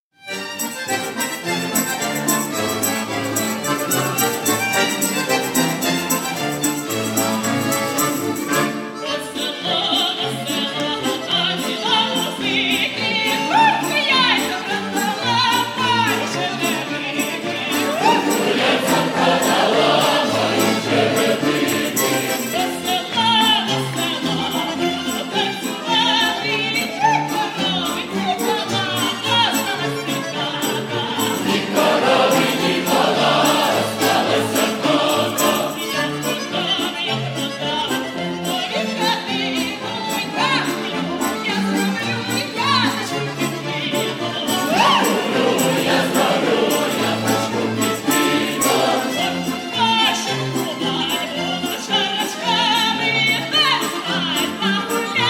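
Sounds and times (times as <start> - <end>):
instrumental music: 0.1 - 55.2.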